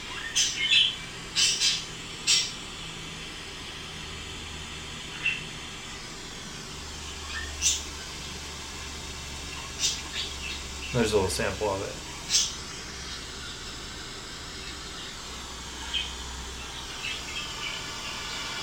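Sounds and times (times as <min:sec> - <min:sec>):
parakeets squawking: 0:00.1 - 0:02.6, 0:05.1 - 0:05.6, 0:07.0 - 0:13.8, 0:14.5 - 0:18.5
speech: 0:00.4 - 0:00.7, 0:11.0 - 0:12.5.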